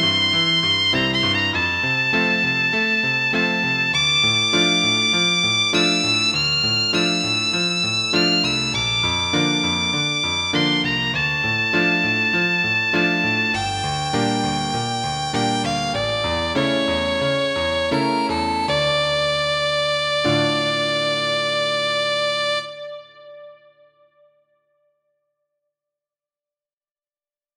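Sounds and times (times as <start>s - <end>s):
violin in a duet with piano: 0.0s - 23.4s
piano in a duet with violin: 0.0s - 24.3s.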